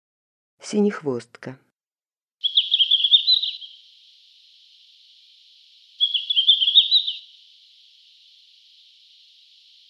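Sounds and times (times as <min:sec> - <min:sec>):
red-flanked bluetail song: 0:02.4 - 0:09.8.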